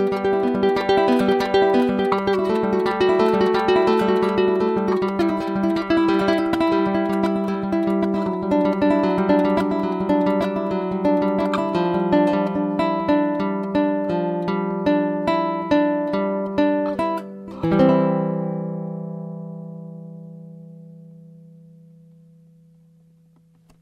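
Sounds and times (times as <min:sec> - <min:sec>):
archtop tenor guitar: 0:00.0 - 0:23.8.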